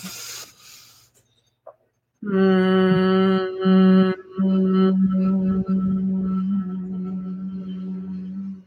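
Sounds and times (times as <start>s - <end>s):
breath intake: 0.0s - 1.2s
person humming on one low note: 2.2s - 8.6s.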